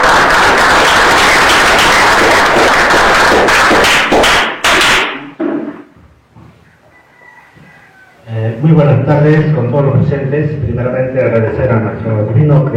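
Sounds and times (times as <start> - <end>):
crowd clapping: 0.0 - 5.3
speech: 8.6 - 12.7.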